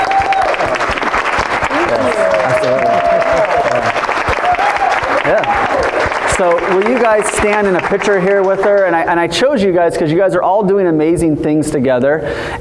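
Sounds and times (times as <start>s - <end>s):
big round of audience applause: 0.0s - 9.1s
speech: 6.4s - 12.5s.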